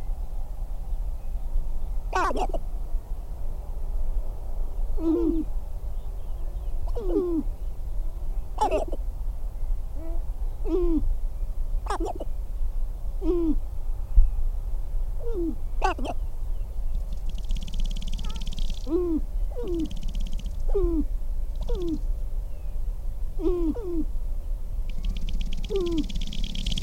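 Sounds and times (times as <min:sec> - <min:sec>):
steady low rumble: 0:00.0 - 0:26.8
sharp-tailed grouse giving harmonic yelping calls: 0:02.1 - 0:02.6, 0:05.0 - 0:05.5, 0:06.9 - 0:07.5, 0:08.6 - 0:09.0, 0:11.8 - 0:12.3, 0:15.2 - 0:16.3, 0:17.1 - 0:22.1, 0:23.4 - 0:24.1, 0:24.9 - 0:26.8
speech: 0:02.3 - 0:02.7, 0:05.0 - 0:05.6.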